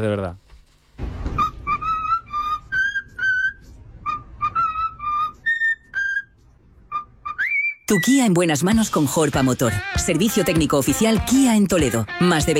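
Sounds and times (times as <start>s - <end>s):
speech: 0.0s - 0.4s, 7.9s - 12.5s
cockatoo whistling a birthday song: 1.3s - 8.2s.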